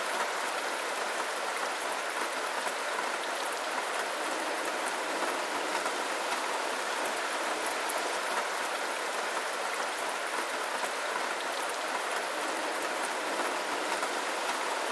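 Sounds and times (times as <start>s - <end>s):
rain: 0.0s - 14.9s.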